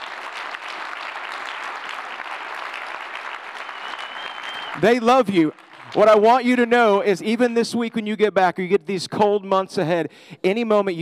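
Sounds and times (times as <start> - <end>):
audience applause: 0.0 - 6.4
speech: 4.8 - 10.9.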